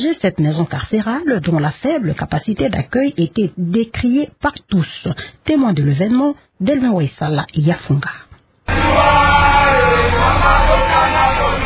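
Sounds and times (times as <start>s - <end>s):
speech: 0.0s - 8.2s
detainees chanting farewell leaving Bunia central prison: 8.7s - 11.6s.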